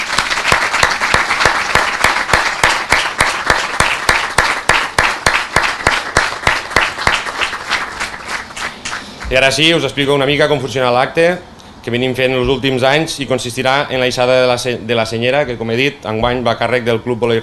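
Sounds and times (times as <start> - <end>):
applause: 0.0 - 9.4
speech: 9.3 - 17.4.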